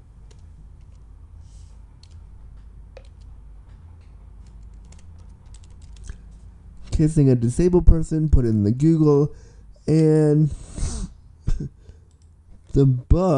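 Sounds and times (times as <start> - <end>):
typing a Google search on a computer keyboard: 2.0 - 2.3, 3.0 - 3.3, 4.4 - 6.3
speech: 7.0 - 10.8, 12.7 - 13.3.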